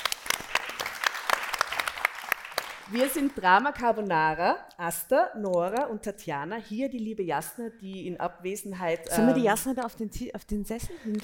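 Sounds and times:
theatre audience applauding a comedy troupe on stage: 0.0 - 3.4
speech: 2.9 - 11.2.

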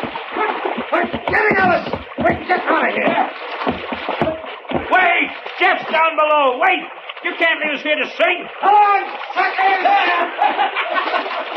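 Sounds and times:
skiff pushed over a ship's rail splashing into water: 0.0 - 11.5
people shouting urgently: 0.2 - 3.4, 4.2 - 5.3, 8.6 - 10.3
speech: 1.3 - 3.8, 4.9 - 11.5
laughter: 9.8 - 11.5.

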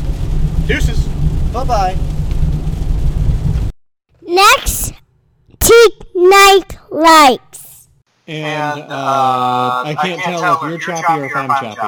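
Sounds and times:
rain: 0.0 - 3.7
thunder: 0.0 - 3.7
speech: 0.7 - 1.0, 1.6 - 2.1, 5.8 - 7.5, 8.3 - 11.8.

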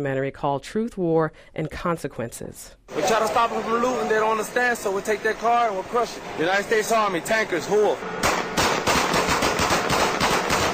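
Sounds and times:
speech: 0.0 - 8.4
rapid automatic gunfire: 8.2 - 10.7.

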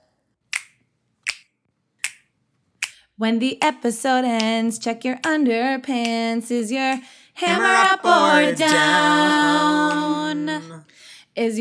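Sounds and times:
finger snaps: 0.5 - 3.1, 4.4 - 4.6
speech: 3.2 - 11.5.

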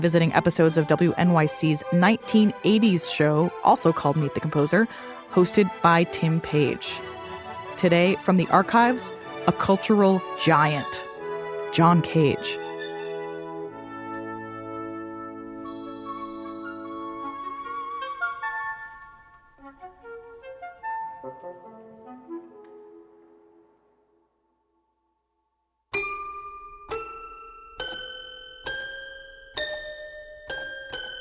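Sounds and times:
speech: 0.0 - 7.1, 7.8 - 11.1, 11.7 - 12.6
toy piano playing a composed suite: 15.6 - 17.5, 25.9 - 31.1.

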